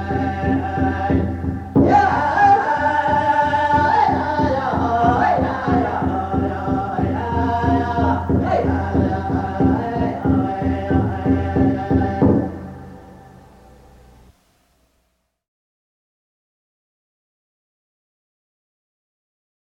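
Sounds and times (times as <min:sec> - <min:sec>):
American Indian traditional chants: 0:00.0 - 0:14.3
American Indian spiritual songs: 0:00.0 - 0:15.0.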